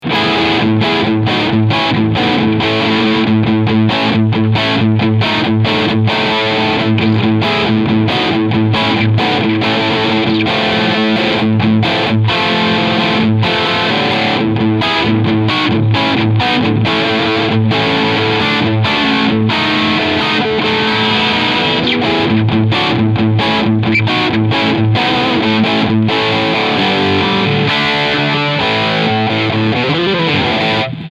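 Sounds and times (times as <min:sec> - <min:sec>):
Maybach Stradovari guitar riff on bridge pickup: 0:00.0 - 0:31.1.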